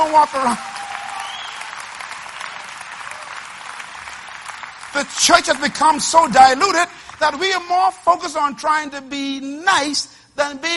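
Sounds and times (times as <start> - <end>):
audience clapping: 0.0 - 8.0
speech: 0.1 - 0.7, 5.0 - 10.7.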